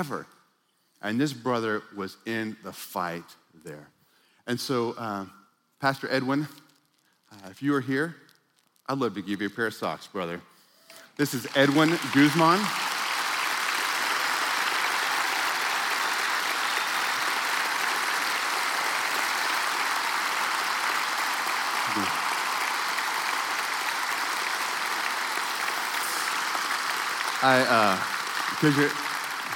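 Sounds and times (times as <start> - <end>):
speech: 0.0 - 0.4, 1.0 - 6.6, 7.3 - 8.2, 8.9 - 10.5, 11.2 - 12.9, 27.4 - 29.0
audience clapping and cheering: 11.2 - 29.5.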